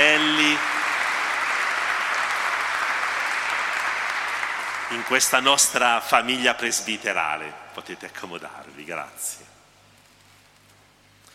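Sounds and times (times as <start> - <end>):
congregation applauding: 0.0 - 7.4
speech: 5.0 - 9.5.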